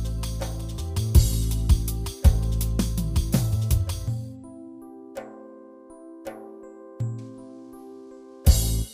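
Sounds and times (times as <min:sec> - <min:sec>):
Yamaha PSR A300TR rhythm pattern: 0:00.0 - 0:04.3, 0:08.5 - 0:08.9.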